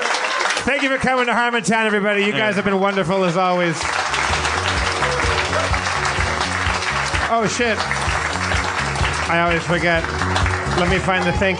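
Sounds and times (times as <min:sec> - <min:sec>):
audience clapping: 0:00.0 - 0:11.5
speech: 0:00.7 - 0:04.2, 0:07.3 - 0:08.0, 0:09.3 - 0:11.5.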